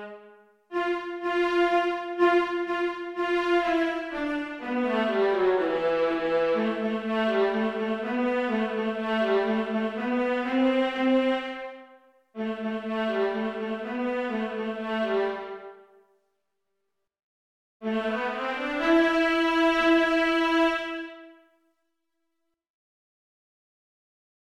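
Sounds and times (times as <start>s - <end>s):
viola playing a canon: 0.7s - 15.7s, 17.8s - 21.3s.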